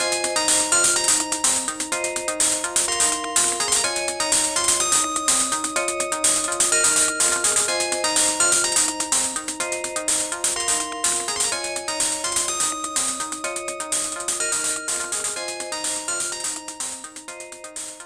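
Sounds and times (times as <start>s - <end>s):
ringtone: 0.0s - 18.0s.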